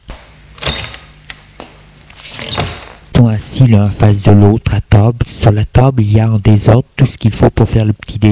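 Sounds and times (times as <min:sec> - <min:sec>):
door opening: 0:00.6 - 0:01.4, 0:02.2 - 0:03.1
speech: 0:03.2 - 0:08.2.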